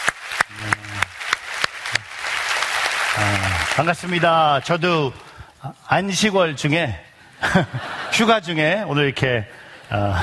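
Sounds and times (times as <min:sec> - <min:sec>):
audience applause: 0:00.0 - 0:05.3
speech: 0:03.2 - 0:10.2
laughter: 0:07.4 - 0:08.3.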